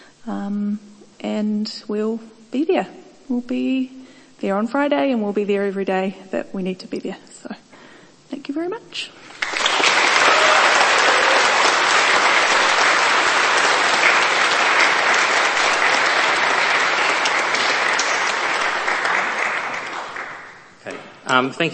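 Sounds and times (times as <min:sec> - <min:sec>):
speech: 0:00.2 - 0:07.6, 0:08.5 - 0:09.2, 0:21.3 - 0:21.7
audience applause: 0:09.3 - 0:20.7.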